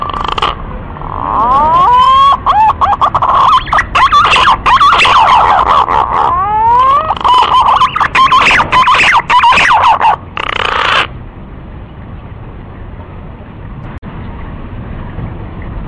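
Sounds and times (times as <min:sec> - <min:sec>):
green pigeon lure call of sweeping quavering whistles: 0:01.4 - 0:11.1.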